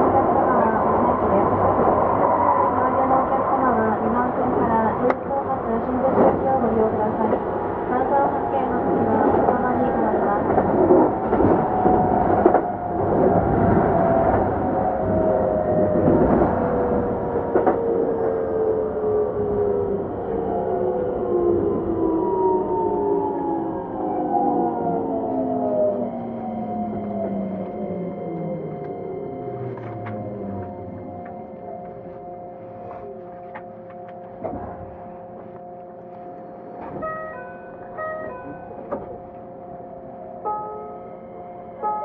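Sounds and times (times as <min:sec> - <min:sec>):
Keikyu 2100 series train rumbling and clattering: 0:00.0 - 0:41.1
short chime-like beeps: 0:37.0 - 0:38.8.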